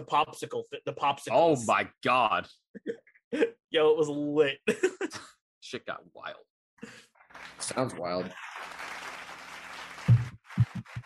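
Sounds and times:
speech: 0.0 - 8.8
laughter: 4.6 - 5.3
golf clap, soft polite applause: 7.3 - 11.0.

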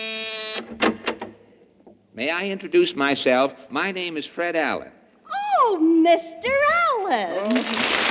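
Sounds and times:
doorbell buzzing: 0.0 - 0.7
speech: 0.6 - 0.8, 2.2 - 5.0, 5.6 - 8.0.

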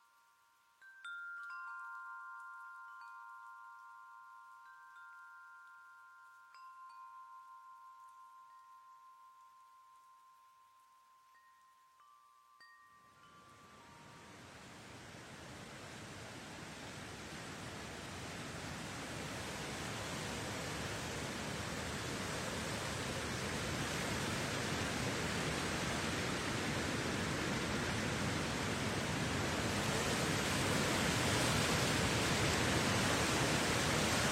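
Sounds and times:
wind chime ringing: 0.0 - 14.5
steady hiss of rain: 0.0 - 34.3.

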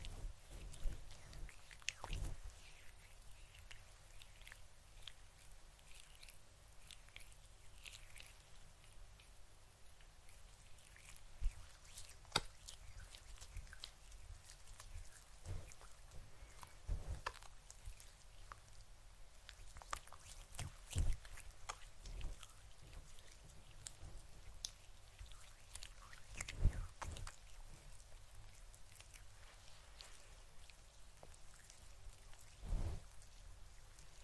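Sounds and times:
fluffy microphone brushing and rubbing for a scalp massage: 0.0 - 4.6, 11.1 - 18.5, 19.6 - 34.2
low steady hush: 0.0 - 34.2.

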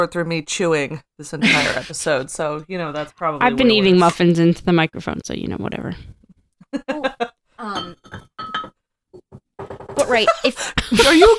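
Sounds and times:
speech: 0.0 - 8.3, 10.1 - 11.3
champagne glass clinking while pouring: 7.7 - 8.8.

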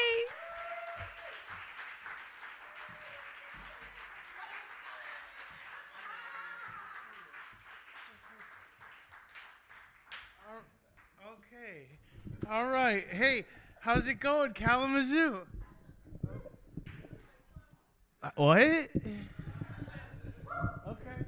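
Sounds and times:
audience applause: 0.0 - 10.6
speech: 11.7 - 15.5, 18.4 - 19.4.

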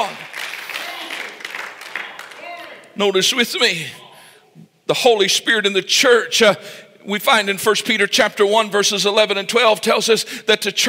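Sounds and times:
audience hand clapping: 0.0 - 3.0
speech: 3.0 - 4.0, 4.9 - 10.8.

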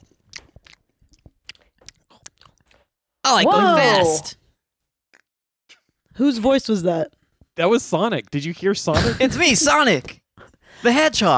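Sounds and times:
people chewing hot dogs: 0.0 - 4.3
speech: 3.3 - 4.4, 6.2 - 10.2, 10.8 - 11.3.

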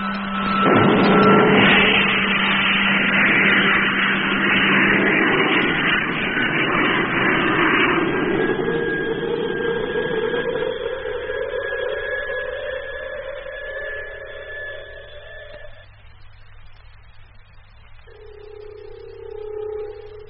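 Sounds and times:
spaceship rocket motors firing: 0.0 - 16.2, 18.1 - 20.2
thin whining tone: 0.0 - 20.2.

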